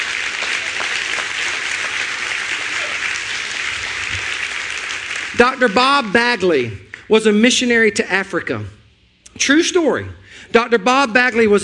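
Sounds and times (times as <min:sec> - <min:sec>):
church audience clapping: 0:00.0 - 0:07.1
speech: 0:05.4 - 0:08.8, 0:09.4 - 0:11.6.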